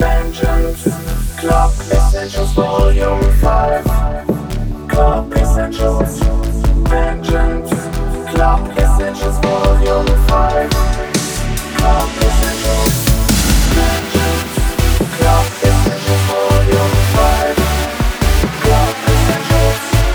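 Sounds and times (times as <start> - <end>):
140 BPM intro mix in E: 0.0 - 20.1.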